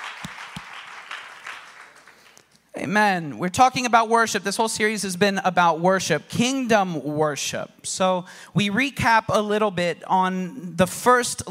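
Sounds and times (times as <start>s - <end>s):
audience applause: 0.0s - 2.4s
speech: 2.8s - 11.4s.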